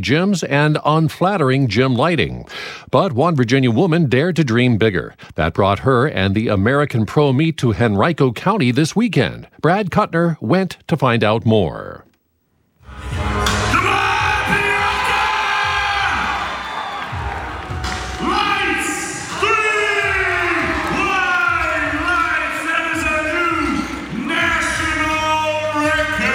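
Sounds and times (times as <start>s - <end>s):
speech: 0.0s - 12.1s
powerlifting meet spectators yelling and cheering a national record: 13.0s - 26.3s.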